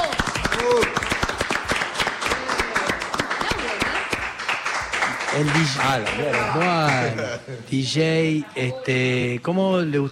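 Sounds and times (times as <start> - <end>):
applause: 0.0 - 7.2
speech: 5.4 - 10.0.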